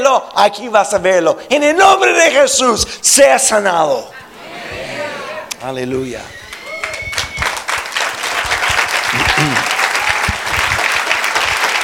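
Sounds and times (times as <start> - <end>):
speech: 0.2 - 4.7, 5.6 - 6.4
audience applause: 6.5 - 11.8.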